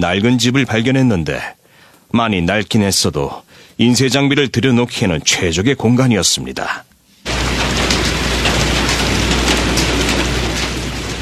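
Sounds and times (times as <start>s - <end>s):
speech: 0.0s - 8.0s
heavy rain leaking through a roof: 7.2s - 11.2s.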